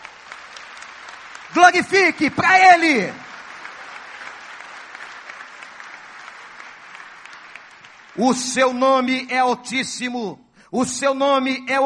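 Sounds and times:
audience applause: 0:00.0 - 0:08.8
speech: 0:01.5 - 0:03.2, 0:08.2 - 0:11.8.

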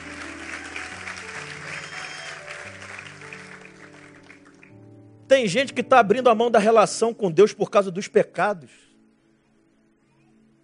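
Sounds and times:
audience applause: 0:00.0 - 0:04.7
keyboard chords: 0:00.0 - 0:08.4
speech: 0:05.3 - 0:08.9.

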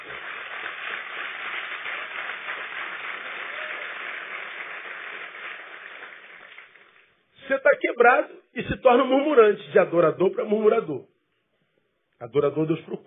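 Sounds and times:
audience applauding: 0:00.0 - 0:07.2
speech: 0:07.5 - 0:11.1, 0:12.2 - 0:13.0.

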